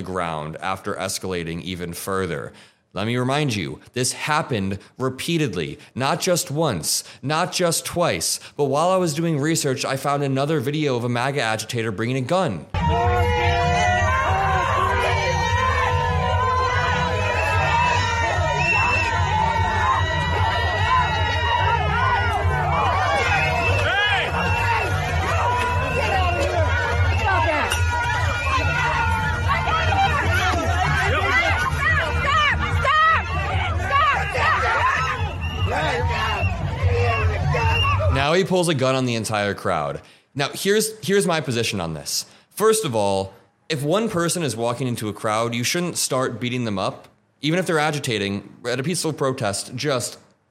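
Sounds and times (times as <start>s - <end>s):
speech: 0.0s - 13.6s, 38.4s - 50.4s
large crowd shouting and screaming: 12.7s - 38.5s.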